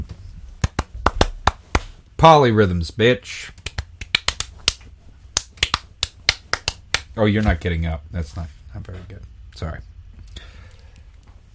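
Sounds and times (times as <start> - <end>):
loud hand claps: 0.6 - 2.0, 3.6 - 7.1
speech: 2.2 - 3.6, 7.2 - 9.9.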